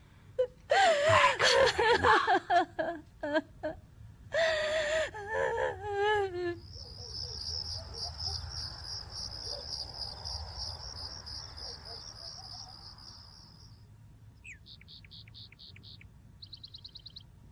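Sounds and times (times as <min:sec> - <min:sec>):
woman next door sobbing and wailing: 0:00.4 - 0:06.6
crickets chirping: 0:06.5 - 0:17.2.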